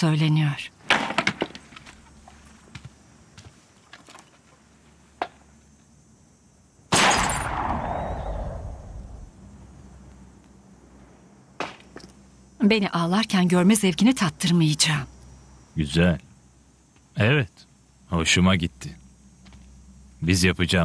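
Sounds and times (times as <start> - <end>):
speech: 0.0 - 0.8, 12.6 - 15.2, 15.8 - 16.3, 17.2 - 19.0, 20.2 - 20.8
gunshots: 6.9 - 9.3.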